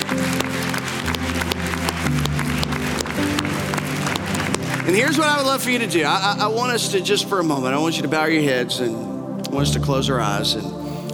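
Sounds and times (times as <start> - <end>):
round of applause from a crowd: 0.0 - 6.1
sustained low musical notes: 0.0 - 11.1
speech: 4.9 - 10.8.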